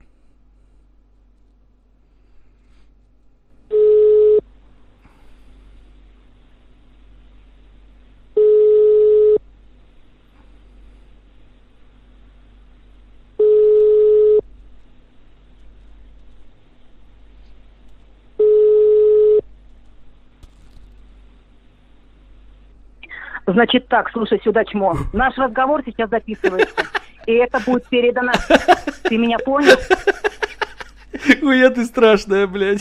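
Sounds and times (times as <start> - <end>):
faint hum: 0.0 - 32.7
telephone line busy signal beeps: 3.7 - 4.4, 8.4 - 9.4, 13.4 - 14.4, 18.4 - 19.4
speech: 23.6 - 30.1, 31.4 - 32.7
laughter: 26.3 - 31.8.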